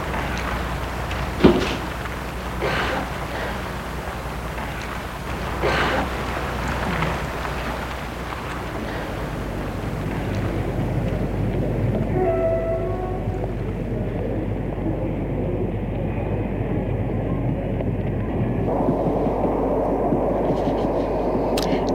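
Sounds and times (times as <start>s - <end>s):
train station hall rumble: 0.0s - 21.9s
faint tonal squeals or announcements: 6.1s - 15.5s.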